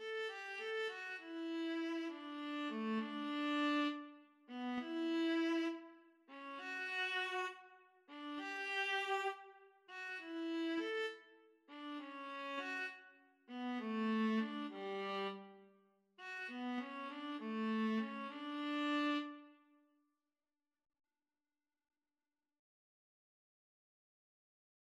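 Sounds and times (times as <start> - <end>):
viola duet: 0.0 - 15.6, 16.2 - 19.5.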